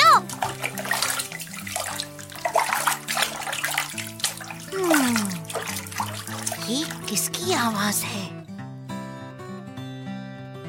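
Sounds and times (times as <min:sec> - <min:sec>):
running water from washing hands and face: 0:00.0 - 0:08.0.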